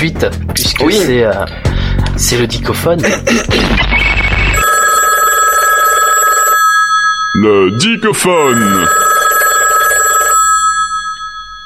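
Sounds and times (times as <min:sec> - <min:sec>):
speech: 0:00.0 - 0:04.2, 0:07.4 - 0:09.0
telephone bell ringing: 0:04.6 - 0:11.6.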